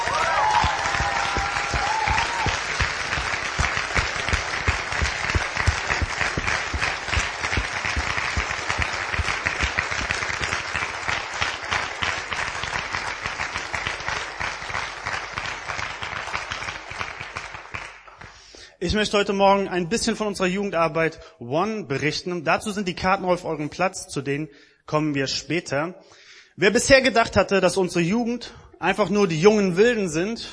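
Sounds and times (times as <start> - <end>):
audience applause: 0.0 - 18.4
speech: 18.9 - 30.5.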